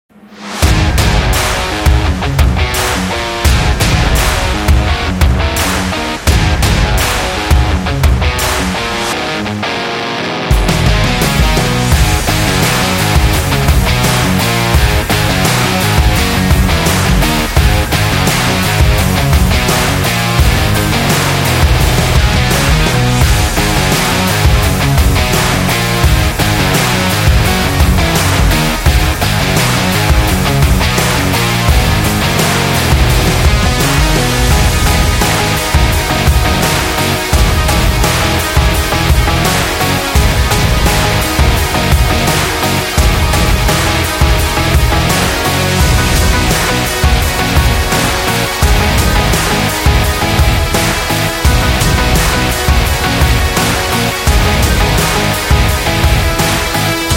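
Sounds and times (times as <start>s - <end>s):
positive indie rock: 0.6s - 57.1s.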